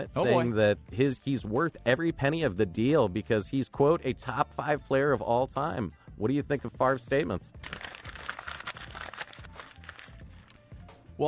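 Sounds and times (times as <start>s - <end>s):
speech: 0.0s - 7.9s
sheet of paper being crumpled by hand: 7.6s - 10.6s.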